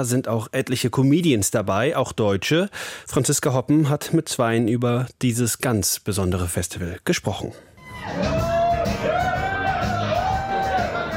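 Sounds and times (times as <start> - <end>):
speech: 0.0 - 9.1
bar audience whooping and cheering: 7.8 - 11.1.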